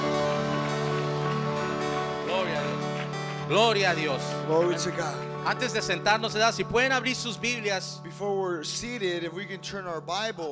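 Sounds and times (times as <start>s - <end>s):
audience applause: 0.0s - 6.0s
speech: 3.5s - 10.5s.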